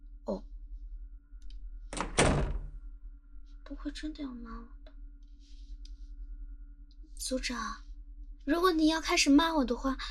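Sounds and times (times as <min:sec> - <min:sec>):
faint low hum: 0:00.0 - 0:10.0
speech: 0:00.3 - 0:00.5, 0:03.8 - 0:04.8, 0:07.2 - 0:10.0
door closing: 0:01.9 - 0:02.7.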